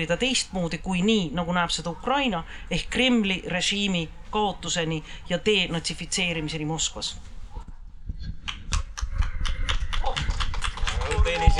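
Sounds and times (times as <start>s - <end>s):
speech: 0.0s - 7.3s, 11.4s - 11.5s
scattered applause from a small group: 8.5s - 11.5s.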